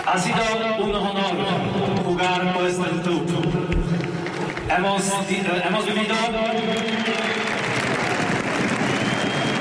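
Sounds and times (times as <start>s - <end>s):
speech: 0.1s - 3.5s, 4.7s - 7.5s
large crowd applause encouraging a player: 3.9s - 4.8s, 5.8s - 9.6s.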